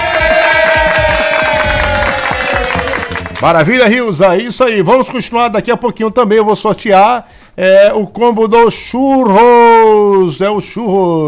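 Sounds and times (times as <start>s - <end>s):
audience applause: 0.0s - 3.9s
speech: 3.4s - 11.2s.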